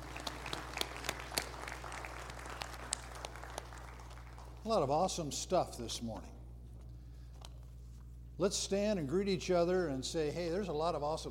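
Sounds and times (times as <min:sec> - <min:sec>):
church congregation applauding: 0:00.0 - 0:04.9
speech: 0:04.6 - 0:06.4, 0:08.4 - 0:11.2.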